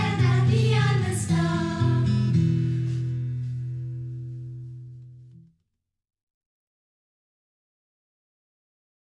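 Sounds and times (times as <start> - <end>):
English songs for kids: 0.0 - 3.1.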